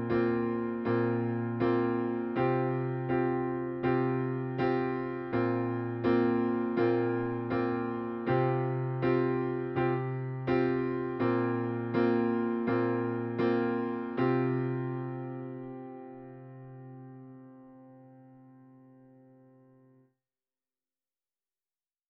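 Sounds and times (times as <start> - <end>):
piano accompaniment to water: 0.0 - 20.0.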